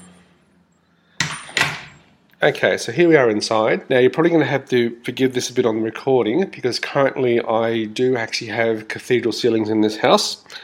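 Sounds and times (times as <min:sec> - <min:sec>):
front door closing: 0:01.2 - 0:02.1
speech: 0:02.4 - 0:10.6.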